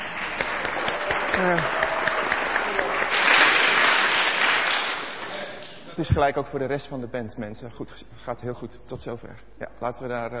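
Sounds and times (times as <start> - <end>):
crowd applause: 0.0 - 5.8
person whooping: 1.3 - 2.1
speech: 1.4 - 1.8, 6.0 - 10.3.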